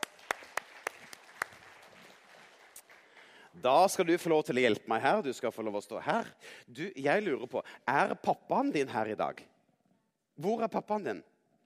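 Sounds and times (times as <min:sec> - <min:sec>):
audience clapping: 0:00.0 - 0:04.3
speech: 0:03.6 - 0:09.5, 0:10.4 - 0:11.3.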